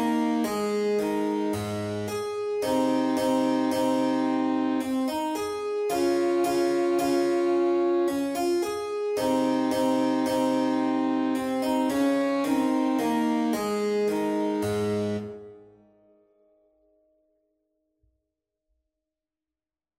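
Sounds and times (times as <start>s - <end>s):
minuet at medium tempo 110: 0.0s - 15.7s.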